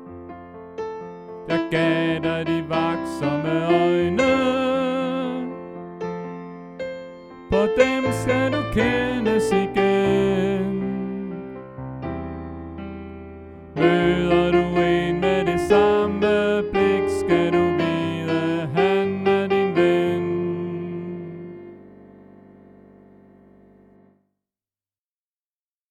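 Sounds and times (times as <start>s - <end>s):
soprano voice: 1.5s - 5.8s, 7.5s - 11.7s, 13.8s - 22.0s.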